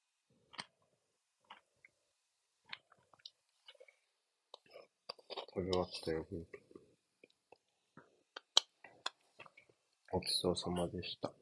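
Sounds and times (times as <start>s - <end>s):
chewing a piece of Alfort chocolate biscuit: 2.6s - 9.8s
speech: 5.6s - 6.7s, 10.2s - 11.4s.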